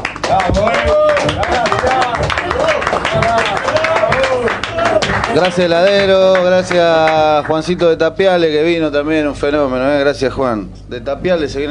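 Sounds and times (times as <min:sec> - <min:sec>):
audience applause: 0:00.0 - 0:07.6
voices shouting and cheering: 0:00.2 - 0:06.3
speech: 0:00.3 - 0:00.9, 0:05.3 - 0:11.6.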